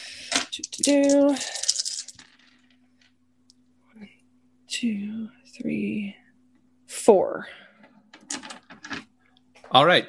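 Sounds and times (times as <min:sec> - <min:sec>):
six dice rattling across a table during a tabletop role-playing game: 0:00.3 - 0:02.8, 0:08.1 - 0:09.1
speech: 0:00.6 - 0:01.6, 0:04.8 - 0:06.2, 0:07.1 - 0:07.6, 0:09.7 - 0:10.0.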